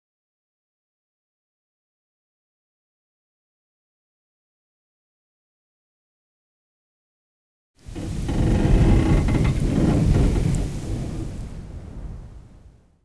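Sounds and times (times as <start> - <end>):
wind gust: 7.8 - 13.0.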